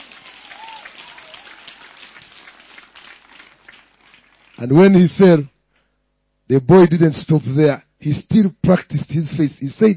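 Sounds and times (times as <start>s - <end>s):
audience hand clapping: 0.0s - 5.2s
speech: 4.6s - 5.5s, 6.5s - 9.9s.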